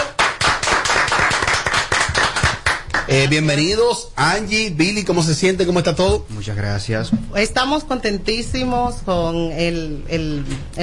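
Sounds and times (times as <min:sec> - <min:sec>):
studio applause: 0:00.0 - 0:03.6
speech: 0:03.1 - 0:10.8.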